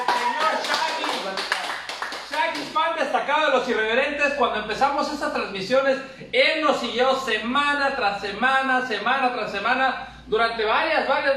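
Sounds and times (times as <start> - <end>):
applause, hands clapping: 0.0 - 2.8
speech: 3.2 - 11.3.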